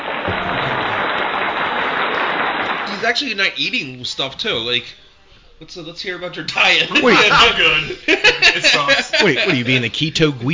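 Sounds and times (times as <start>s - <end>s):
laughter: 0.0s - 3.3s, 6.5s - 9.9s
sizable crowd applauding: 0.0s - 4.0s
speech: 3.1s - 10.5s.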